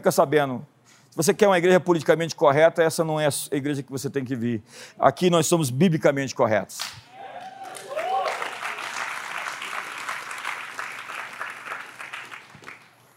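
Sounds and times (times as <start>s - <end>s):
speech: 0.0s - 7.1s
sparse applause from a small audience: 7.2s - 13.0s.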